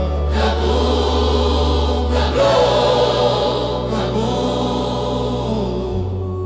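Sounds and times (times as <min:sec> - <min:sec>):
orchestral music: 0:00.1 - 0:06.4.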